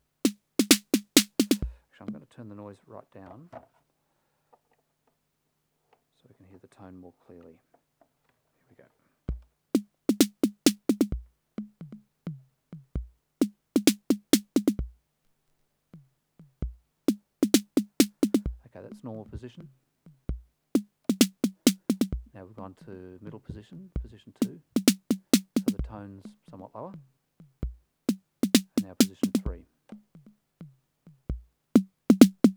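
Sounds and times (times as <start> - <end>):
TR-606 drum machine noise snare: 0.3 - 1.7, 9.8 - 11.2, 13.4 - 14.8, 17.1 - 18.5, 20.8 - 22.2, 24.4 - 25.8, 28.1 - 29.5, 31.8 - 32.5.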